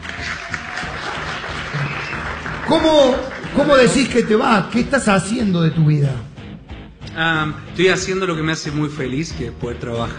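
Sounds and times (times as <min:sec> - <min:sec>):
group applause: 0:00.0 - 0:05.3
speech: 0:02.7 - 0:06.3, 0:07.2 - 0:10.1.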